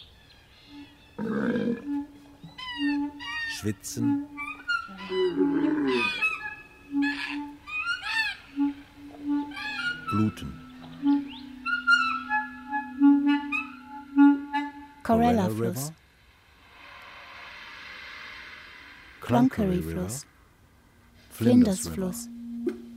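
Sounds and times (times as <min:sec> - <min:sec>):
scattered whistly chirping calls: 0:00.0 - 0:14.8
steady droning hum: 0:00.4 - 0:15.4, 0:20.3 - 0:22.9
camels groaning: 0:00.9 - 0:14.4
speech: 0:03.6 - 0:04.3, 0:05.1 - 0:06.2, 0:10.2 - 0:11.1, 0:15.1 - 0:16.0, 0:19.3 - 0:20.3, 0:21.4 - 0:22.4.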